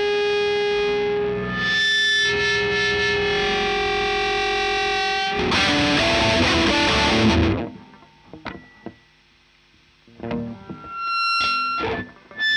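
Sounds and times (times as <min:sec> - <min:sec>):
electric guitar line through a Marshall amplifier: 0:00.0 - 0:09.0, 0:10.0 - 0:12.5.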